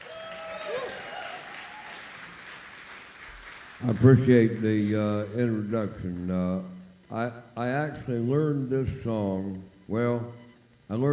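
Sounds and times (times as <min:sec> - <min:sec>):
audience applause welcoming a blues musician: 0:00.0 - 0:05.5
speech: 0:03.8 - 0:11.1.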